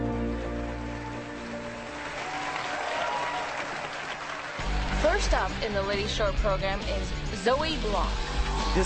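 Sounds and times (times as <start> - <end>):
arena crowd clapping and cheering: 0.2 - 5.7
speech: 5.4 - 8.8.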